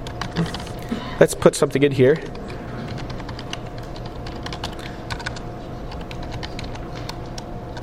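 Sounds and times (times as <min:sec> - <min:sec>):
code being typed on a computer keyboard: 0:00.0 - 0:00.7, 0:02.4 - 0:07.8
speech: 0:00.4 - 0:00.6, 0:01.2 - 0:02.4.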